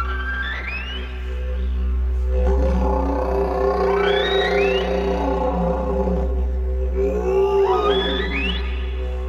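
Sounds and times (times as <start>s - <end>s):
didgeridoo drone: 0.0s - 9.2s
didgeridoo whoops imitating whale song: 2.5s - 9.1s.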